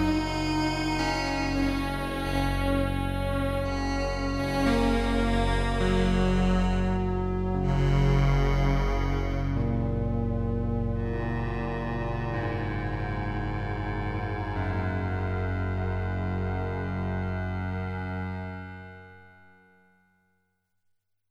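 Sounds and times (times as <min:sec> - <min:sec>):
Yamaha TG33 synthesizer: 0:00.0 - 0:20.0.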